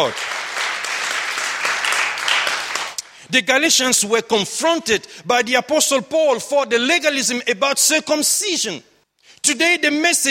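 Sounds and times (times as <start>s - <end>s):
speech: 0.0s - 0.4s, 3.3s - 10.2s
church congregation clapping hands in praise to God: 0.0s - 3.2s.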